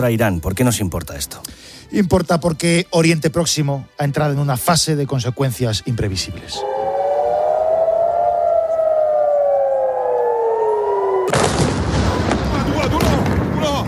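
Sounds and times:
speech: 0:00.0 - 0:06.9
air raid siren wailing: 0:06.6 - 0:12.3
bombing explosions: 0:11.3 - 0:13.6.

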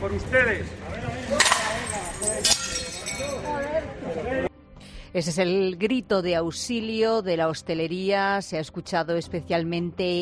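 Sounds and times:
speech: 0:00.0 - 0:01.6, 0:05.1 - 0:10.2
shards clinking: 0:01.2 - 0:03.5
plates thrown and smashing on the street: 0:01.3 - 0:03.4.

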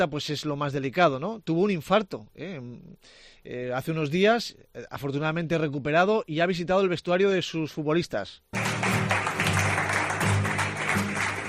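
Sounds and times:
speech: 0:00.0 - 0:08.8
applause in a locker room: 0:08.5 - 0:11.4.

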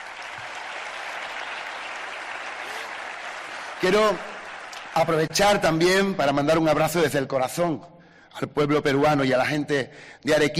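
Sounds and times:
audience applause: 0:00.0 - 0:05.9
speech: 0:03.8 - 0:04.3, 0:05.0 - 0:10.5.

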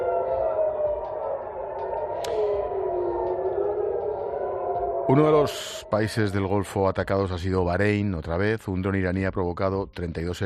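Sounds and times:
air raid sirens wailing: 0:00.0 - 0:08.0
sharp click: 0:02.2 - 0:02.6
speech: 0:05.1 - 0:10.4.

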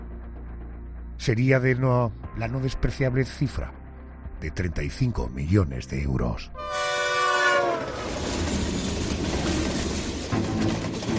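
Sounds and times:
speech: 0:01.2 - 0:03.8, 0:04.4 - 0:07.0
train horn blast: 0:06.6 - 0:08.1
passing train rumbling: 0:06.8 - 0:11.1
wheels clacking on rails: 0:07.6 - 0:11.1.

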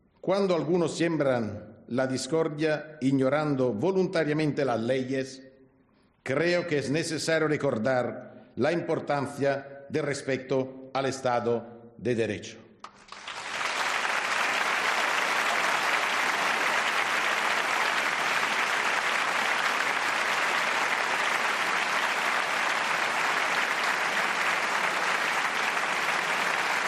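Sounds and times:
speech: 0:00.2 - 0:05.4, 0:06.2 - 0:12.6
sustained applause from a large crowd: 0:13.0 - 0:26.8.

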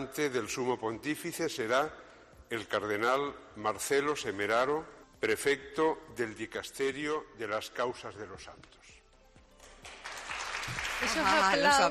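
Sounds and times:
speech: 0:00.0 - 0:09.0, 0:11.0 - 0:11.8
Hermanas de la Cruz nuns applauding: 0:09.6 - 0:11.8.

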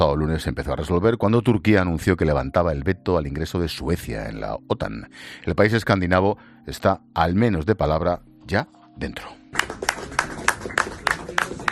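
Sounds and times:
speech: 0:00.0 - 0:09.6
timid applause after the Sweden–Turkey NATO agreement: 0:09.5 - 0:11.7.

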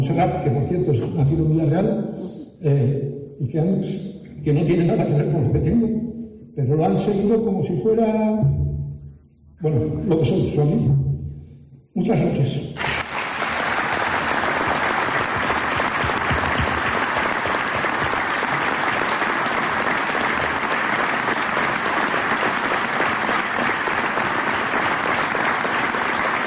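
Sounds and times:
speech: 0:00.1 - 0:08.6, 0:09.6 - 0:11.0, 0:12.0 - 0:13.0
audience applause after a speech: 0:12.8 - 0:26.4.

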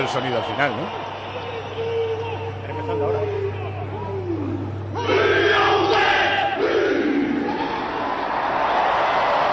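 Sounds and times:
speech: 0:00.0 - 0:01.2
large stadium crowd shouting in unison: 0:00.0 - 0:09.5
steady low hum: 0:01.0 - 0:09.5.

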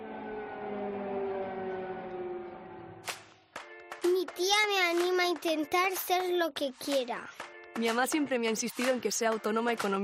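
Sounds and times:
sirens wailing: 0:00.0 - 0:03.1
speech: 0:04.4 - 0:10.0.

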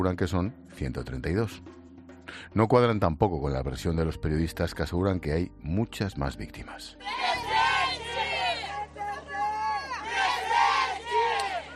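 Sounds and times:
speech: 0:00.0 - 0:07.5
street protest crowd chanting: 0:07.0 - 0:11.7.

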